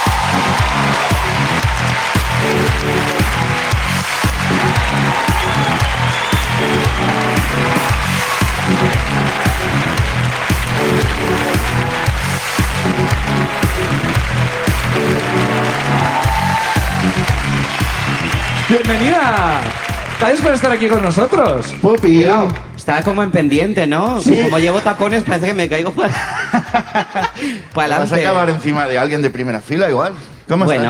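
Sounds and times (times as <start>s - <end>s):
audience applause welcoming a guest: 0.0s - 21.8s
speech: 18.9s - 30.8s
laughter: 26.0s - 28.0s.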